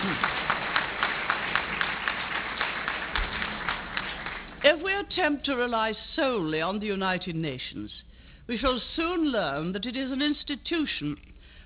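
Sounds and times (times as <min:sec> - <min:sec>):
audience applause: 0:00.0 - 0:04.7
speech: 0:04.6 - 0:11.3.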